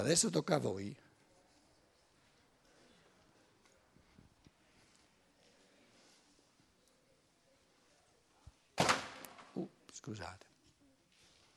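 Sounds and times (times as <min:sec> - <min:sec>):
speech: 0:00.0 - 0:01.1, 0:10.0 - 0:10.5
door shutting with a thud during a lecture: 0:08.8 - 0:09.6.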